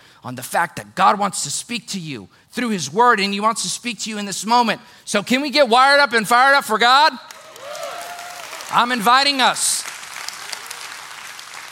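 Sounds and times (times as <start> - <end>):
speech: 0.2 - 7.4, 8.7 - 9.9
audience applause: 7.3 - 11.6.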